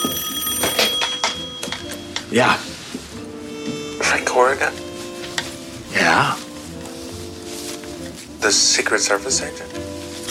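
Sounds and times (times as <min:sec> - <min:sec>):
telephone ringing with a bright electronic trill: 0:00.0 - 0:02.4
speech: 0:02.3 - 0:02.7, 0:04.1 - 0:04.8, 0:06.0 - 0:06.4, 0:08.4 - 0:09.9.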